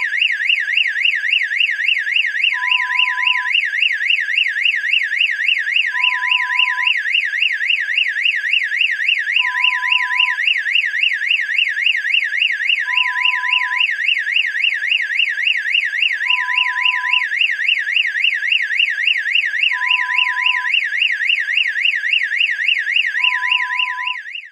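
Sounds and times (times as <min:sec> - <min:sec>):
burglar alarm: 0:00.0 - 0:24.4.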